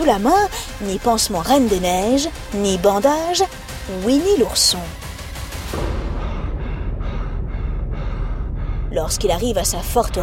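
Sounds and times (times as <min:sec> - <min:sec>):
speech: 0:00.0 - 0:05.0, 0:09.0 - 0:10.2
exhausted out-of-breath man panting heavily: 0:05.8 - 0:09.0.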